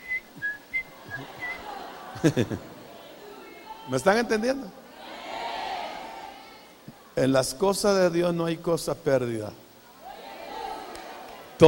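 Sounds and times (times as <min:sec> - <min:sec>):
person whistling: 0:00.0 - 0:01.6
laughter: 0:00.9 - 0:03.4
speech: 0:02.2 - 0:02.7, 0:03.9 - 0:04.8, 0:07.2 - 0:09.6.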